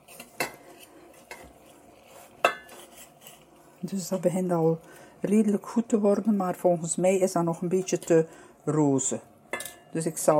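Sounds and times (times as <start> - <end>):
knife cutting through cooked venison against a plate or board: 0.0 - 3.6
speech: 3.8 - 9.3, 9.9 - 10.3.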